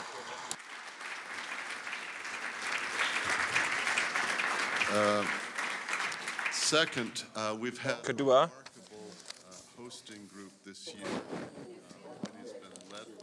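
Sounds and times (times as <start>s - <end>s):
audience applause: 0.0s - 7.3s
speech: 4.9s - 5.4s, 6.7s - 8.6s, 9.9s - 11.8s.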